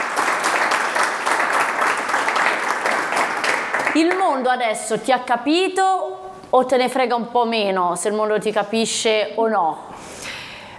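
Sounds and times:
hand clapping applause: 0.0 - 4.5
speech: 4.0 - 10.3.

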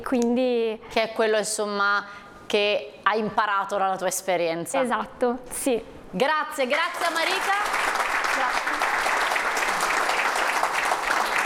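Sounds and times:
speech: 0.0 - 8.8
audience applause: 6.8 - 11.4.

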